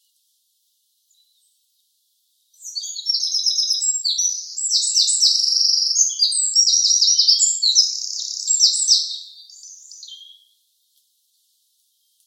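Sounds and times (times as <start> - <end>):
Troglodytes troglodytes wren calling: 2.6 - 10.5.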